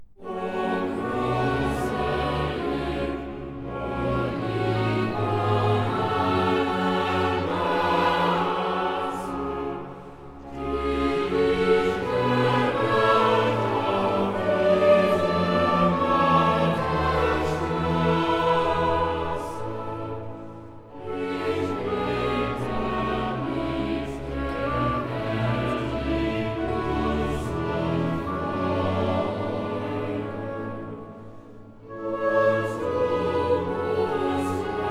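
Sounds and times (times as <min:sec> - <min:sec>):
choir singing: 0:00.2 - 0:34.8.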